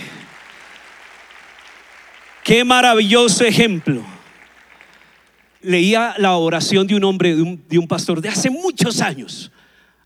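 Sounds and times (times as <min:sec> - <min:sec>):
audience applauding: 0:00.0 - 0:07.1
speech: 0:02.5 - 0:04.2, 0:05.6 - 0:09.6.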